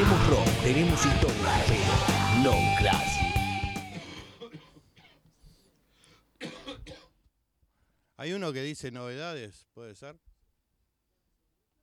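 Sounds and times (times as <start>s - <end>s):
speech: 0.3s - 3.3s, 8.2s - 10.3s
coughing fit: 2.5s - 5.7s, 6.4s - 7.3s.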